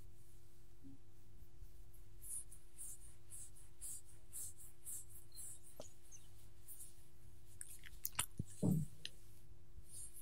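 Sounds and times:
dog being petted, scratching and rubbing strokes: 0.0 - 10.2
low steady hum: 0.0 - 10.2
thump: 8.6 - 9.0.

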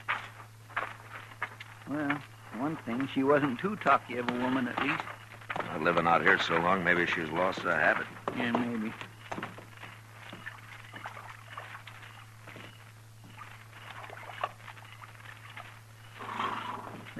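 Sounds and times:
steady low hum: 0.0 - 17.1
speech: 1.9 - 5.1, 5.7 - 9.1
horse drinking water: 2.6 - 17.1.

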